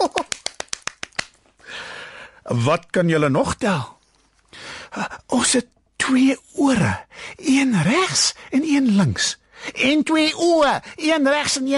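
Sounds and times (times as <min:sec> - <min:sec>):
hand clapping: 0:00.0 - 0:01.5
speech: 0:02.5 - 0:04.0, 0:05.0 - 0:11.7.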